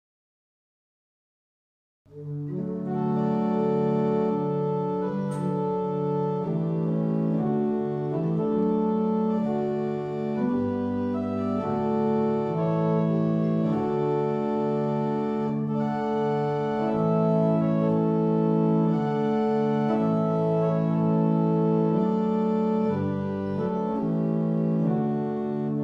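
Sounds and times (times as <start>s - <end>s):
barrel organs: 2.2s - 25.8s.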